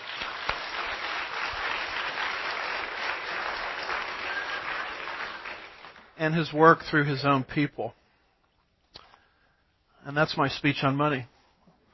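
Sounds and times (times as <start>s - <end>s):
audience applause: 0.0s - 6.2s
speech: 6.2s - 8.0s, 10.1s - 11.3s.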